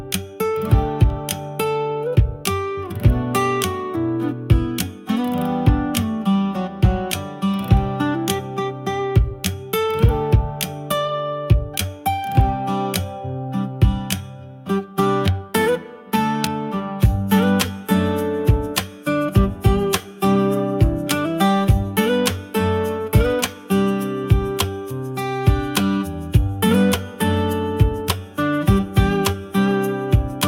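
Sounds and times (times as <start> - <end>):
acoustic beat: 0.0 - 30.4.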